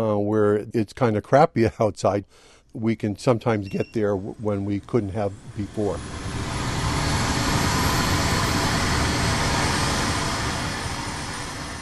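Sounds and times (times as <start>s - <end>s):
speech: 0.0s - 6.4s
EC-135 ambulance helicopter taking off from helipad: 3.7s - 11.7s.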